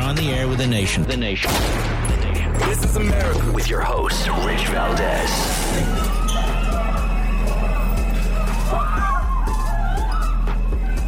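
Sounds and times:
speech: 0.2s - 2.0s, 2.6s - 6.3s
crowd screaming leaving a New York City subway: 4.4s - 11.0s.

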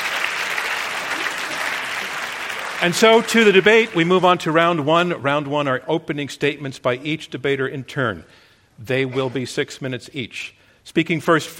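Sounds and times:
audience applause: 0.0s - 4.9s
speech: 2.8s - 11.5s.

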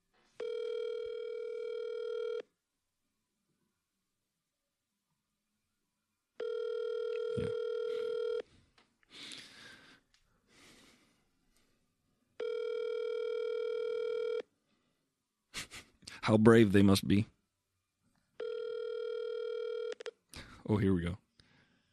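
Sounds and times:
telephone ringing: 0.4s - 2.5s, 6.4s - 8.4s, 12.4s - 14.5s, 18.4s - 20.1s
speech: 16.3s - 17.4s, 20.7s - 21.2s.

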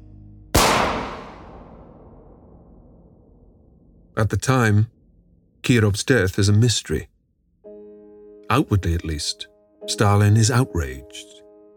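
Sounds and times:
gunshot sound effect of a gunman firing: 0.6s - 2.7s
low hum: 0.6s - 5.9s
speech: 4.2s - 5.0s, 5.6s - 7.1s, 8.5s - 11.4s.

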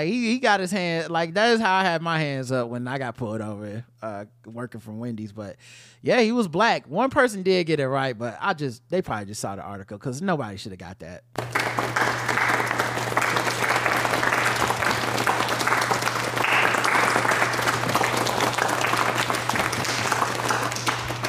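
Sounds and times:
speech: 0.0s - 12.2s
golf clap, light polite applause: 11.4s - 21.2s.

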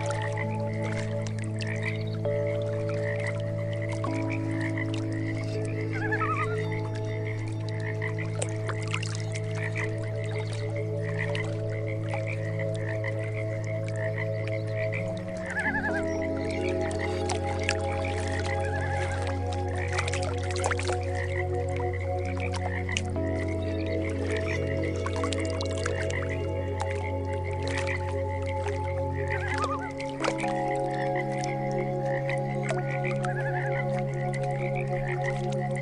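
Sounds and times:
short trilling call: 0.0s - 11.5s, 14.1s - 20.8s, 28.6s - 35.1s
frog chorus croaking: 0.0s - 35.8s
slow meditation music: 0.0s - 35.8s
soft water sounds: 0.0s - 35.8s.

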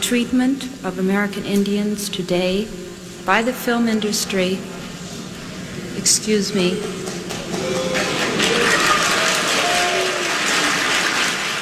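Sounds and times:
speech: 0.0s - 4.8s, 6.0s - 7.9s
audience booing: 6.8s - 11.6s.

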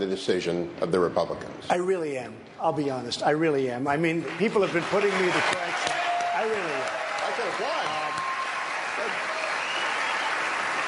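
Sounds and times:
speech: 0.0s - 7.8s
audience applause: 4.2s - 10.8s.

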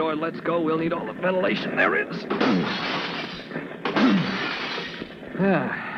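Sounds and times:
speech: 0.1s - 3.1s, 4.0s - 4.4s, 5.4s - 5.9s
glass windows being smashed open: 2.3s - 5.1s.

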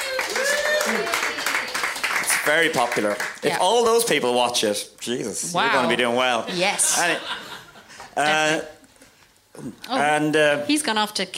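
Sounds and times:
voices whooping and calling out: 0.0s - 1.7s
audience clapping: 0.0s - 4.0s
speech: 2.5s - 7.4s, 8.2s - 8.8s, 9.6s - 11.3s
laughter: 6.5s - 8.7s.

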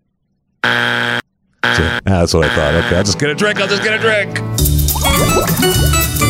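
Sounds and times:
harsh electronic buzzer: 0.6s - 4.0s
speech: 1.8s - 6.2s.

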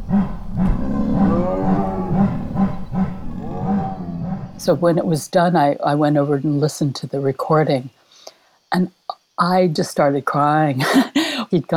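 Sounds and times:
big cat chuffing chorus: 0.0s - 5.2s
big cats' deep moaning rumbling calls: 0.0s - 5.2s
speech: 4.7s - 8.0s, 8.7s - 11.7s.

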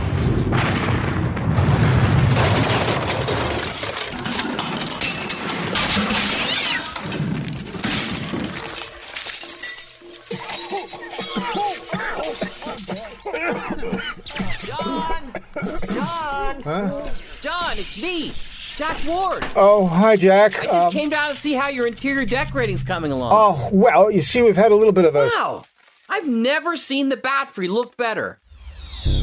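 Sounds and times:
loud dynamite blast boom: 0.0s - 3.3s
clinks and clattering debris: 0.6s - 14.9s, 19.0s - 23.6s
long cascade of shattering glass: 2.3s - 14.9s
laughter: 10.3s - 17.2s
speech: 17.8s - 28.4s.

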